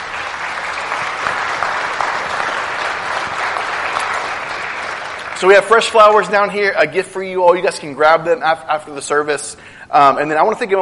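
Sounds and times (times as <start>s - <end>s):
audience applause: 0.0s - 6.4s
speech: 5.4s - 10.7s.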